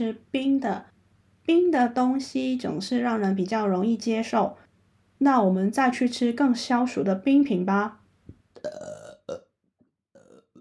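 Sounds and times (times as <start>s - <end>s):
speech: 0.0s - 0.9s, 1.5s - 8.0s, 8.6s - 9.4s
burp: 8.6s - 9.5s, 10.2s - 10.5s.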